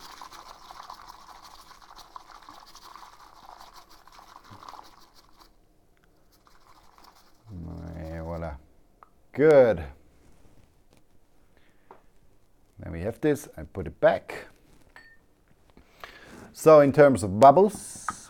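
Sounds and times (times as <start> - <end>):
rinsing matcha with a little water: 0.0 - 5.6
speech: 9.4 - 10.0, 13.2 - 14.5, 16.6 - 18.0.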